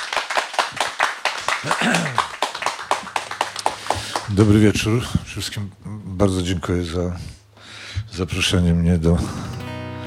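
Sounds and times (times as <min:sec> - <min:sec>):
audience applause: 0:00.0 - 0:04.6
speech: 0:01.6 - 0:02.4, 0:04.3 - 0:07.4, 0:08.2 - 0:09.6.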